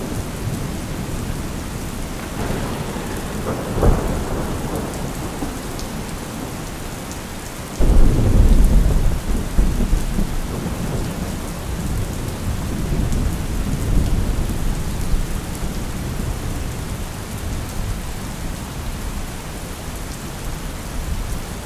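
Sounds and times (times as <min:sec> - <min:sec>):
rain: 0:00.0 - 0:21.6
thunder: 0:00.1 - 0:16.4.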